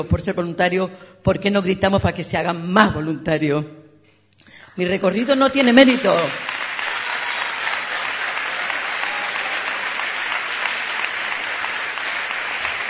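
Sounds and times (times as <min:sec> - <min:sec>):
speech: 0:00.0 - 0:03.8, 0:04.4 - 0:06.5
audience applause: 0:05.6 - 0:12.8.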